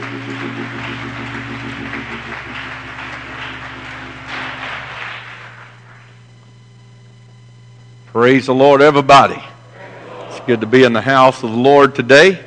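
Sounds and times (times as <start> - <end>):
audience clapping hands: 0.0 - 6.5
sustained low droning tones: 0.0 - 12.4
speech: 8.2 - 9.5, 10.5 - 12.4
laughter: 9.7 - 11.3.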